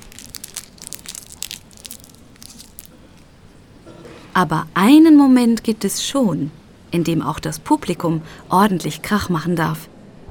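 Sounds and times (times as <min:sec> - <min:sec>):
plastic cough drop wrapper crackling while unwrapped: 0:00.0 - 0:03.8
speech: 0:04.4 - 0:09.9.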